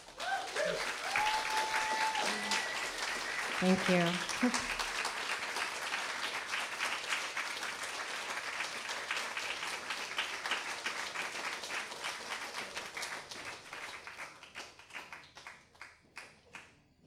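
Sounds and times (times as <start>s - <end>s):
audience applause: 0.0s - 16.3s
speech: 3.6s - 4.8s.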